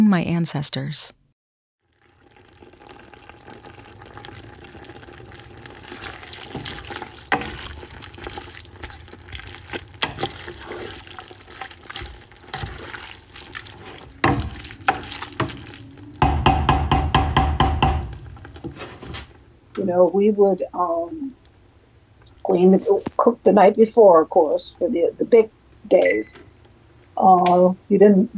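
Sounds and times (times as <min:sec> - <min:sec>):
speech: 0:00.0 - 0:01.2, 0:19.9 - 0:21.4, 0:22.5 - 0:26.5, 0:27.2 - 0:28.3
running water in a kitchen: 0:02.3 - 0:19.7.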